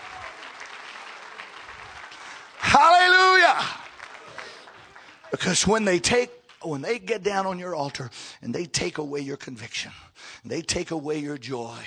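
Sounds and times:
church congregation clapping hands in praise: 0.0 - 6.8
speech: 5.3 - 11.8.

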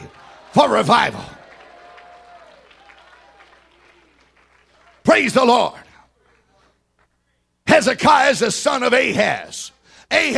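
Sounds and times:
audience clapping: 0.0 - 7.1
speech: 0.5 - 1.4, 5.1 - 5.8, 7.8 - 10.3.

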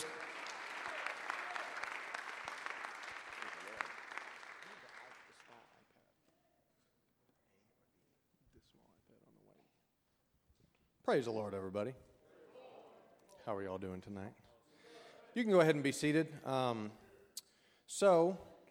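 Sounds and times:
audience hand clap: 0.0 - 5.8
speech: 11.1 - 12.1, 13.5 - 14.5, 15.4 - 17.0, 17.9 - 18.5.

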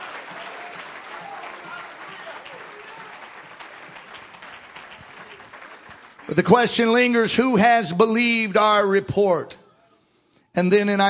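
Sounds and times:
audience clapping hands: 0.0 - 7.6
speech: 6.3 - 9.6, 10.6 - 11.0.

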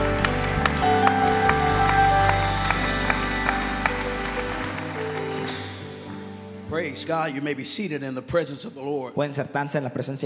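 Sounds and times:
audience clapping hands: 0.0 - 7.2
speech: 6.9 - 10.2.

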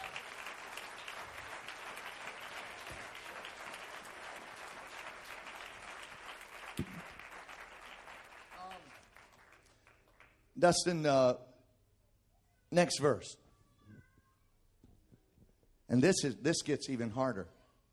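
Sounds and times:
audience clapping hands: 0.0 - 10.6
speech: 10.6 - 11.5, 12.7 - 13.4, 15.9 - 17.6.

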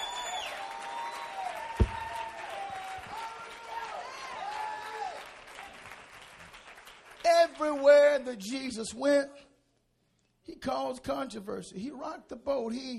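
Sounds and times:
large audience clapping hands: 0.0 - 7.9
speech: 7.6 - 9.5, 10.6 - 12.9.

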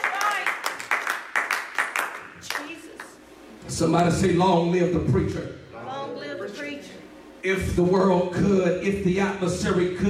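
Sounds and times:
audience clapping in rhythm: 0.0 - 3.2
speech: 3.7 - 5.6, 7.4 - 10.0.

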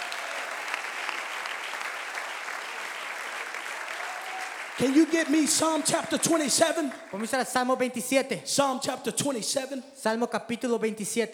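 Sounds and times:
audience clapping hands in praise: 0.0 - 7.8
speech: 4.8 - 11.3.

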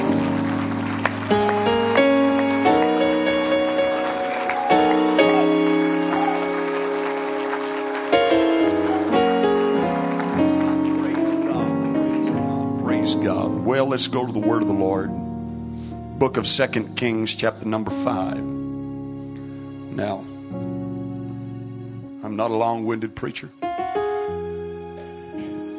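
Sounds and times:
audience clapping hands: 0.0 - 13.2
loud sustained organ chords: 0.0 - 25.7
speech: 14.0 - 15.2, 16.2 - 18.5, 20.0 - 20.3, 22.3 - 23.6.

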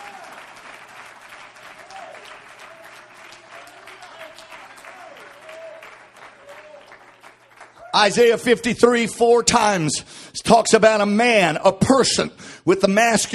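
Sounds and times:
audience clapping hands: 0.0 - 8.7
speech: 8.0 - 13.3.

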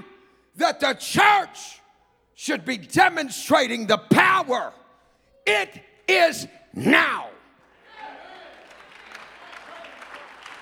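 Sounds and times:
speech: 0.6 - 1.8, 2.4 - 4.8, 5.4 - 7.3
weak clapping from audience: 8.4 - 10.6.

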